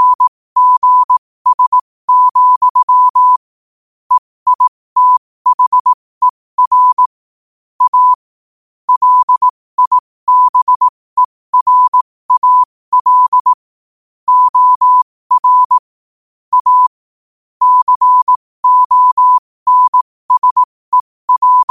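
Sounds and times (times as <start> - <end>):
morse code at 5 wpm: 0.0 - 3.4, 4.2 - 5.9, 6.6 - 7.1, 7.8 - 8.3, 8.9 - 13.6, 14.3 - 15.8, 16.5 - 17.0, 17.6 - 21.6.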